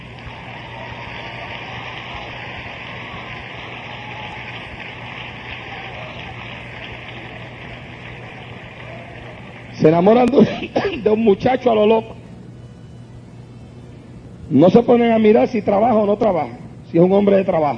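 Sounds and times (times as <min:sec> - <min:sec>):
audience applause: 0:00.0 - 0:09.9
speech: 0:09.8 - 0:12.2, 0:14.5 - 0:17.7.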